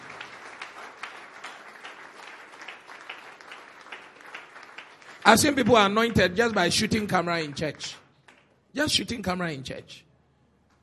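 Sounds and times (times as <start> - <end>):
audience clapping: 0.0 - 8.6
speech: 5.3 - 8.0, 8.7 - 10.1.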